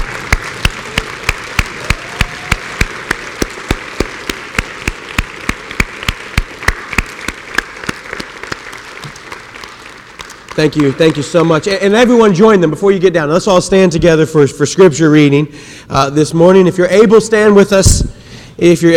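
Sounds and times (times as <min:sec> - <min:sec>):
audience round of applause: 0:00.0 - 0:11.8
speech: 0:10.6 - 0:18.9.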